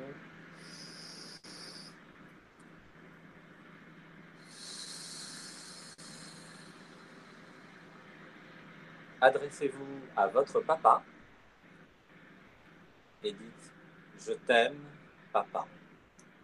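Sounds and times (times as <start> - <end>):
deep breath: 0.6 - 2.0, 4.4 - 8.1
speech: 9.2 - 11.1, 13.2 - 15.8.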